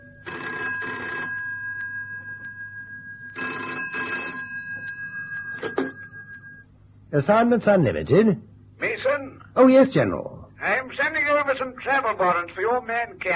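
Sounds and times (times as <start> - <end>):
telephone ringing: 0.0 - 6.8
speech: 7.1 - 8.5, 9.6 - 13.3.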